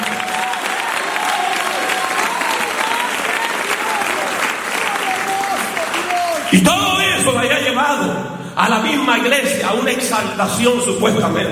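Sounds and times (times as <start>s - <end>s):
audience applauding: 0.0s - 7.3s
speech: 6.5s - 6.9s, 8.6s - 11.5s.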